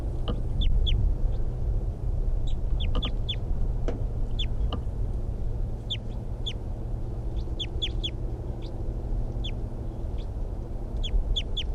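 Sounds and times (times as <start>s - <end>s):
wild bird calling: 0.0s - 1.5s, 2.4s - 3.5s, 4.3s - 4.8s, 5.8s - 11.7s
decoy birds answering with short high chirps: 0.0s - 1.6s, 2.4s - 11.7s
steady low rumble: 0.0s - 11.7s.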